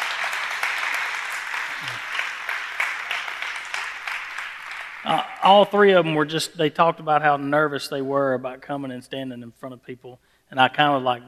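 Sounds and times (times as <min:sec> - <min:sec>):
audience applause at a Mother's Day event: 0:00.0 - 0:05.7
speech: 0:05.1 - 0:11.2.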